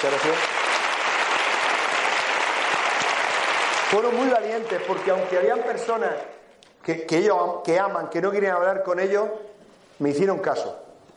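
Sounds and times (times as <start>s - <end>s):
speech: 0.0s - 0.6s, 3.9s - 10.8s
audience clapping: 0.0s - 6.4s.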